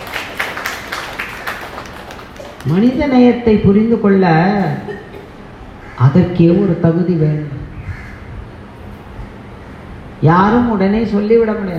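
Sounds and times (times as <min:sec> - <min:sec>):
audience applause: 0:00.0 - 0:02.9
speech: 0:02.6 - 0:05.0, 0:06.0 - 0:07.6, 0:10.2 - 0:11.7
laughter: 0:04.6 - 0:05.6.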